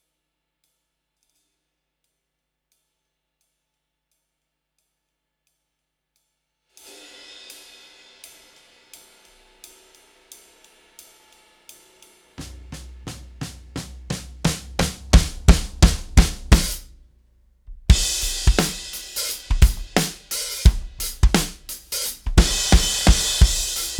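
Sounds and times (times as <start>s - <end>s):
live drums: 12.4s - 17.0s, 17.7s - 23.9s.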